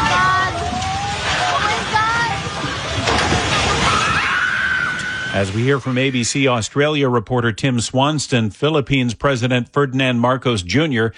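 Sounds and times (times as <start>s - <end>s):
people shouting as a building collapses: 0.0s - 5.8s
loud rumbling roar of a building collapsing: 0.0s - 6.3s
speech: 5.4s - 11.1s.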